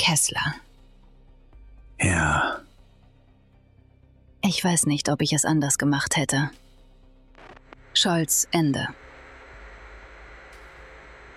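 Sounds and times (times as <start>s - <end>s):
speech: 0.0s - 0.6s, 2.0s - 2.6s, 4.4s - 6.6s, 8.0s - 9.0s
radio static hiss after a connection breaks off: 7.3s - 11.3s.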